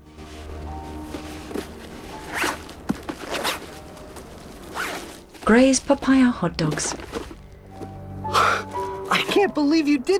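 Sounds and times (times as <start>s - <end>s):
unzipping a cool box: 0.8s - 8.6s
speech: 5.5s - 7.2s, 9.4s - 10.1s.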